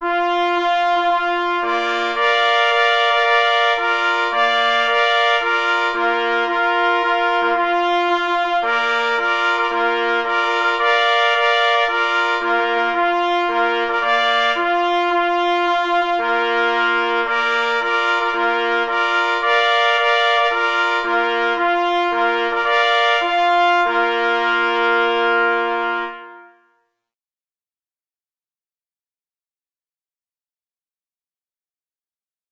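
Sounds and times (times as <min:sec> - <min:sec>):
trumpet call: 0:00.0 - 0:26.9.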